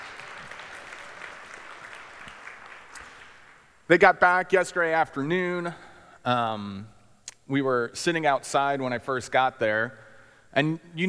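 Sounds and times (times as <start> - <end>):
audience applause: 0.0 - 3.7
speech: 3.9 - 6.9, 7.5 - 11.0.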